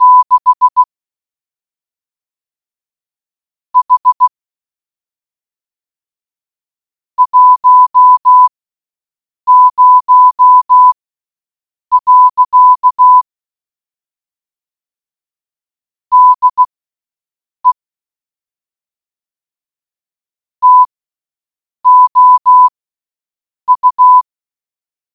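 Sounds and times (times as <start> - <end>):
morse code beeps: 0.0 - 0.9, 3.8 - 4.3, 7.2 - 8.5, 9.5 - 11.0, 11.9 - 13.2, 16.1 - 16.6, 20.6 - 20.9, 21.9 - 22.7, 23.7 - 24.2.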